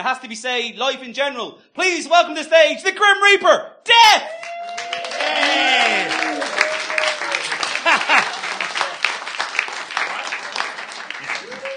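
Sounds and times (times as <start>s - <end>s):
speech: 0.0s - 4.4s, 5.3s - 6.3s
audience member booing: 5.1s - 6.5s
laughter: 5.2s - 11.7s.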